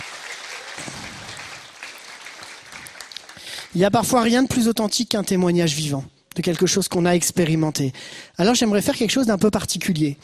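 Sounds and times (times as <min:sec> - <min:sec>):
audience applause: 0:00.0 - 0:03.8
speech: 0:03.7 - 0:10.2.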